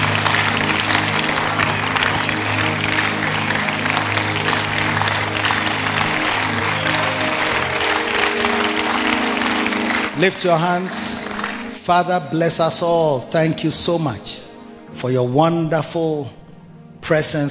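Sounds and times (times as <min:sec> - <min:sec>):
audience clapping: 0:00.0 - 0:12.2
speech: 0:10.2 - 0:11.2, 0:11.9 - 0:16.4, 0:17.1 - 0:17.5.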